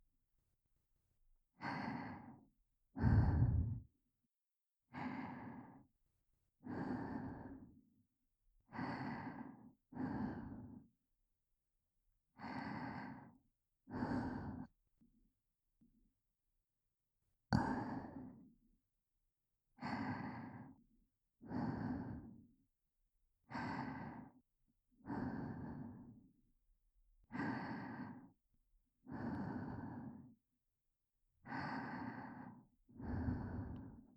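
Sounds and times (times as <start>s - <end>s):
breathing only: 1.6s - 4.0s, 5.0s - 5.9s, 6.6s - 7.9s, 8.7s - 11.0s, 12.4s - 14.7s, 17.5s - 18.5s, 19.8s - 20.8s, 21.4s - 22.6s, 23.5s - 24.4s, 25.0s - 26.4s, 27.3s - 28.4s, 29.0s - 30.4s, 31.4s - 34.1s.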